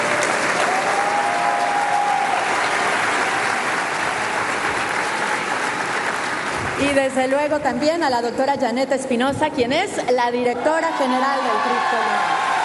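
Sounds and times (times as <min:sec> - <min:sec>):
audience applause: 0:00.0 - 0:07.4, 0:11.4 - 0:12.6
speech: 0:06.9 - 0:12.4.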